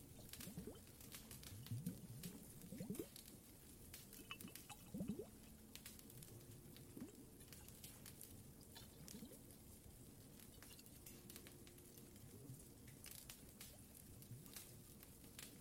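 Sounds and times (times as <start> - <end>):
water gurgling in a cave: 0.0 - 10.7
fireplace crackling: 0.0 - 15.6
fireplace pops and snaps: 0.0 - 15.6
water bubbling swoops: 1.5 - 3.2, 4.2 - 5.4.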